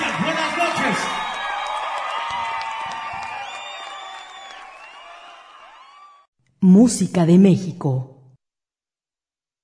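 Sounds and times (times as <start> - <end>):
audience applause and cheering: 0.0 - 6.3
shrill whistles: 0.9 - 6.3
speech: 6.6 - 8.1.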